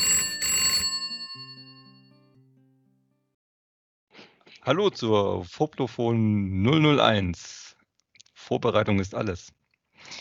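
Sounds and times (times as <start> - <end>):
telephone bell ringing: 0.0 - 2.2
speech: 4.7 - 7.6, 8.5 - 10.1.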